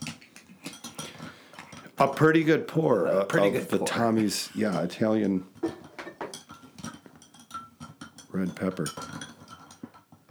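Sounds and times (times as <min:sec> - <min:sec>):
metal spoon clinking and scraping against a glass: 0:00.6 - 0:02.3, 0:05.6 - 0:10.0
speech: 0:02.0 - 0:05.8, 0:08.4 - 0:09.2.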